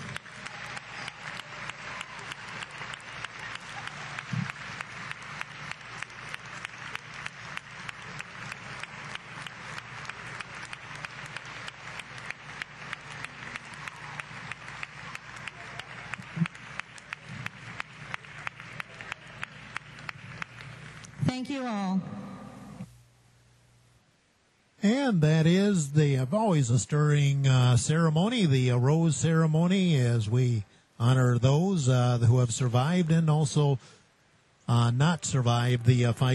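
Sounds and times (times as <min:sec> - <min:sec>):
crowd applauding breast cancer survivors at a volleyball event: 0:00.0 - 0:21.3
speech: 0:21.4 - 0:22.1, 0:24.8 - 0:34.0, 0:34.7 - 0:36.3.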